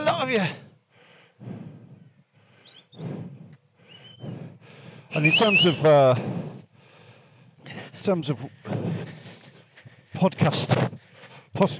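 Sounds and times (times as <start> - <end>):
breathy rushing bursts: 0.0 - 11.7
speech: 0.2 - 0.7, 5.1 - 6.5, 7.7 - 9.3, 10.2 - 11.0, 11.6 - 11.7
robin singing: 2.1 - 6.0.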